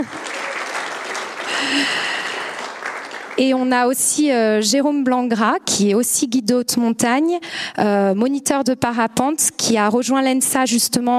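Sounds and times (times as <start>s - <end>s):
crowd applause: 0.0s - 3.7s
speech: 1.6s - 2.0s, 3.4s - 11.1s.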